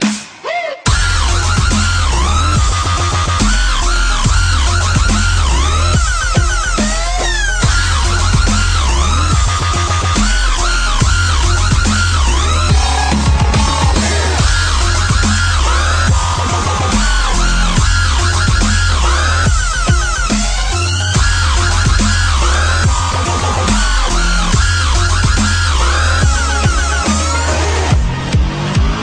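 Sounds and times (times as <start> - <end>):
dubstep music: 0.0 - 29.0.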